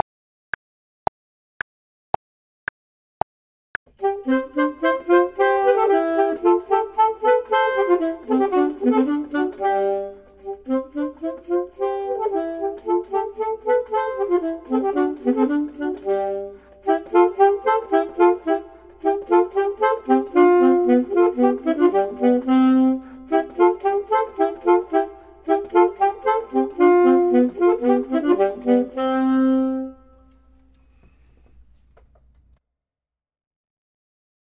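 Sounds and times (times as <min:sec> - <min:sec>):
saxophone: 0:03.9 - 0:31.0
clarinet: 0:04.0 - 0:31.0.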